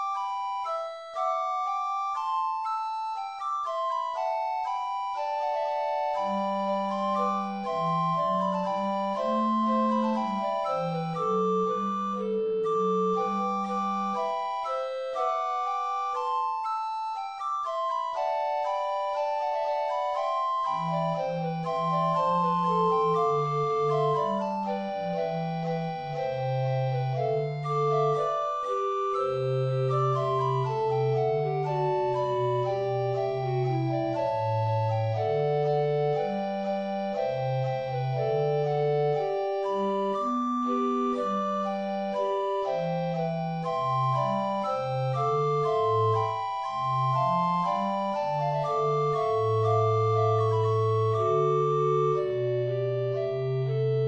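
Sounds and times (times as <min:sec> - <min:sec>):
recorder quartet: 0:00.2 - 0:54.0.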